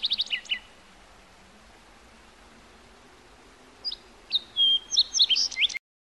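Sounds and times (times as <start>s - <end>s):
bird chirping and trilling: 0.0s - 0.7s, 3.8s - 5.8s.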